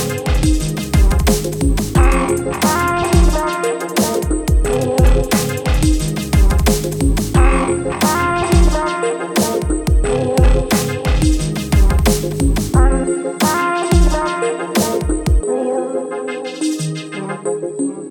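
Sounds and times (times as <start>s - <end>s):
drumstep music: 0.0s - 15.4s.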